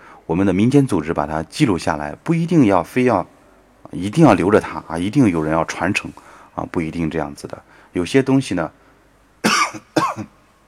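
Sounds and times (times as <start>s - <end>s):
speech: 0.3s - 8.8s, 9.7s - 10.4s
person coughing: 9.4s - 10.4s.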